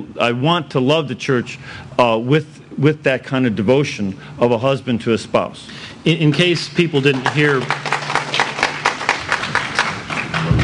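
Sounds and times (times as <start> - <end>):
speech: 0.0 - 7.9
audience applause: 7.0 - 10.6.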